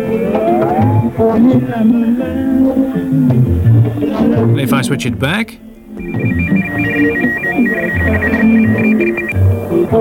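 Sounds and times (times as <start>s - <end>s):
two interfering high-pitched whistling tones: 0.0s - 1.3s, 6.0s - 9.4s
radio music: 0.0s - 10.0s
speech: 1.4s - 2.8s, 4.7s - 10.0s.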